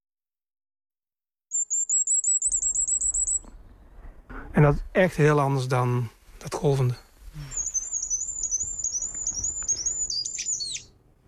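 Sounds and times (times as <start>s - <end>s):
firecrest singing: 1.5s - 3.5s, 7.4s - 11.0s
soft low rumble: 2.6s - 11.2s
speech: 4.6s - 7.6s.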